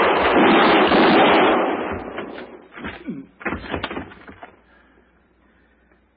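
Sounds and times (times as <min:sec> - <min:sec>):
gunshots in a radio drama gunfight involving a marshal: 0:00.0 - 0:04.5.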